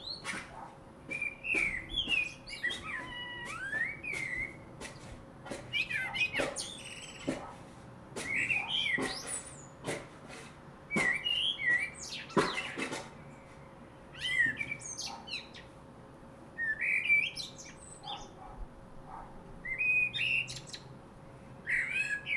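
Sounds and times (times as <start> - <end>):
common blackbird song: 0.0 - 7.5, 8.2 - 9.8, 10.9 - 15.8, 16.6 - 18.5, 19.6 - 20.9, 21.6 - 22.3.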